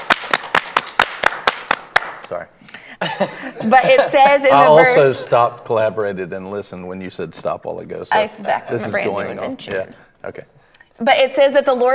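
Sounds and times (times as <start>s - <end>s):
audience clapping hands: 0.0s - 2.4s
speech: 2.3s - 11.9s
laughter: 3.0s - 5.2s.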